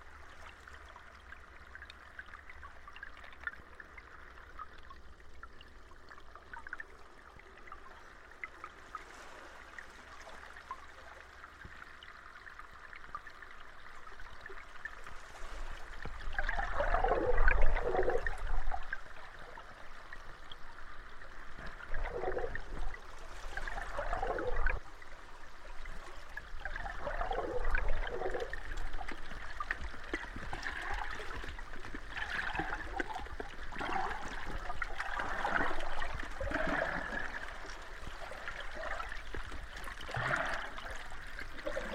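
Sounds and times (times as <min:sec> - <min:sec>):
water of the East Australian Current washing and gurgling: 0:14.0 - 0:41.9.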